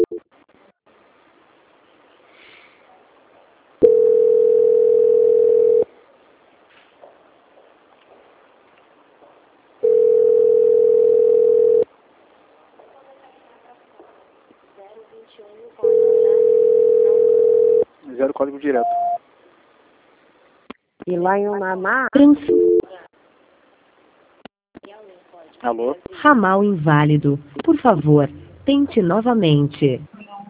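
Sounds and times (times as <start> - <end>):
telephone line tone during a call transfer: 0.0 - 0.2, 3.8 - 5.9, 9.8 - 11.9, 15.8 - 17.9, 22.4 - 22.9
faint low noise: 0.0 - 30.4
speech: 18.6 - 19.0, 21.2 - 22.7, 25.6 - 30.1.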